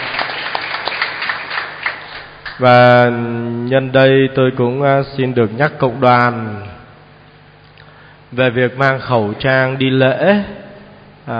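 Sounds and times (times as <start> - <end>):
church congregation applauding: 0.0 - 2.7
speech: 2.6 - 6.7, 8.3 - 10.6.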